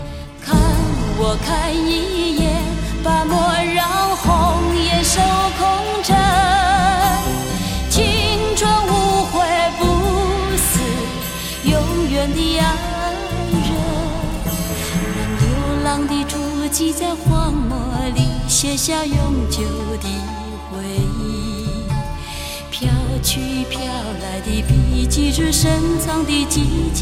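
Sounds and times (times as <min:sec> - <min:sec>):
Chinese song: 0:00.0 - 0:26.9.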